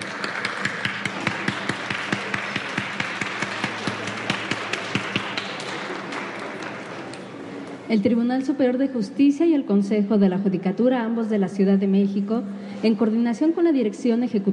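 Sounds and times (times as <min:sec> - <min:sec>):
loud applause: 0:00.0 - 0:07.4
speech: 0:07.9 - 0:14.5.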